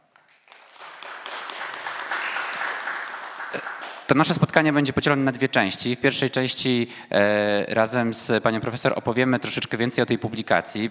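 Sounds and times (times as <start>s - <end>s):
crowd applauding: 0.1s - 4.3s
speech: 3.5s - 10.8s.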